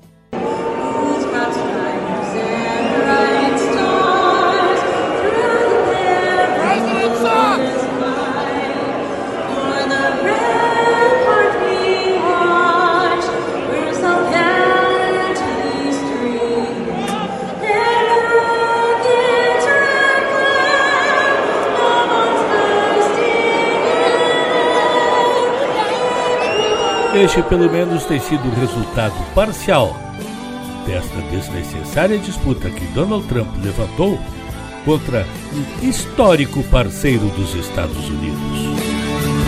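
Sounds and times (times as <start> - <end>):
crowd booing the national anthem: 0.4 - 32.8
speech: 27.3 - 30.0, 31.0 - 39.1.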